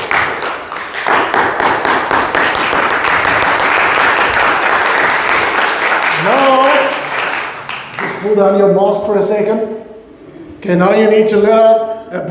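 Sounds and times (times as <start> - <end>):
audience double hand clap: 0.0 - 8.4
speech: 8.2 - 9.9, 10.6 - 12.2.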